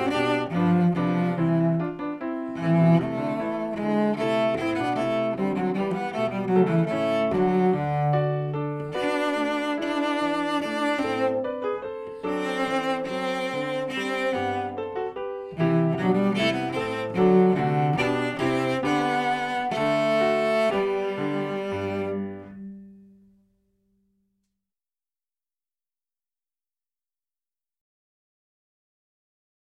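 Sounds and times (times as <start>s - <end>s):
cello playing a march in G: 0.0s - 23.0s.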